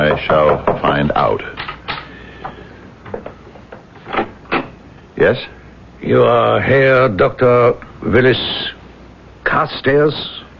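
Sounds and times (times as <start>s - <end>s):
knocking on a door: 0.0s - 0.9s
speech: 0.0s - 1.6s, 5.2s - 8.8s, 9.6s - 10.4s.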